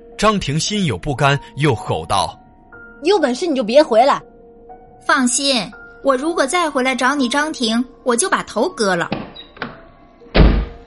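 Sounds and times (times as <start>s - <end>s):
speech: 0.2s - 2.4s, 3.0s - 4.3s, 5.0s - 9.2s
door slamming shut: 9.1s - 10.8s.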